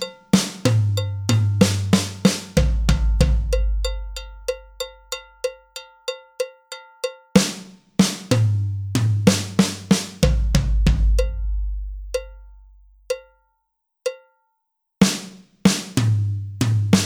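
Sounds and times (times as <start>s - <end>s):
tom drums at 63 bpm: 0.0s - 4.6s, 7.4s - 12.5s, 15.0s - 17.0s.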